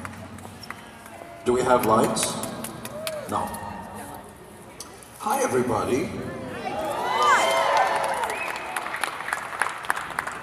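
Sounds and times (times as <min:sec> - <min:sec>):
speech: 0:01.5 - 0:02.5, 0:03.3 - 0:03.6, 0:05.2 - 0:06.4
audience applause: 0:07.0 - 0:10.4.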